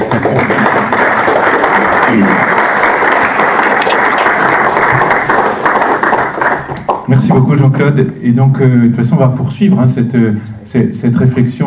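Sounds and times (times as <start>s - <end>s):
audience applause: 0.0s - 7.1s
speech: 7.3s - 11.6s.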